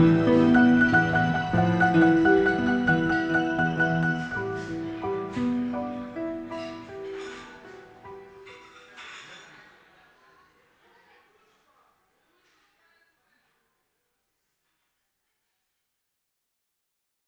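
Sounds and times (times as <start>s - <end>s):
musical interlude: 0.0s - 8.2s.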